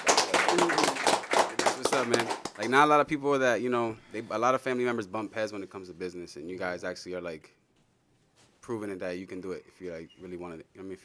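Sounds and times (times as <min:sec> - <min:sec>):
audience clapping: 0:00.0 - 0:02.9
speech: 0:02.0 - 0:07.6, 0:08.6 - 0:11.0.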